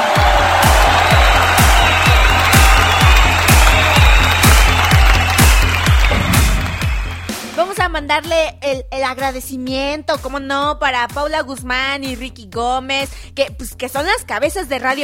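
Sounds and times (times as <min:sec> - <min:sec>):
applause: 0:00.0 - 0:07.8
speech: 0:08.1 - 0:15.0.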